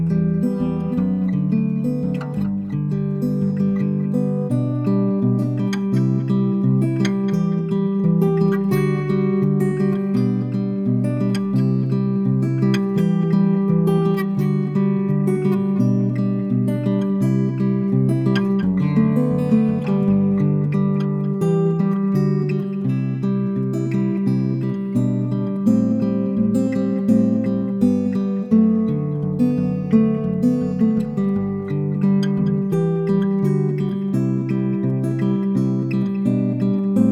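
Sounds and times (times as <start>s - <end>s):
acoustic guitar with effects on: 0.0s - 37.1s.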